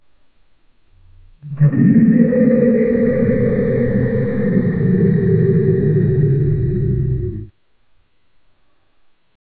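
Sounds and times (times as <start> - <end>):
slowed distorted earrape audio: 0.9 - 7.5.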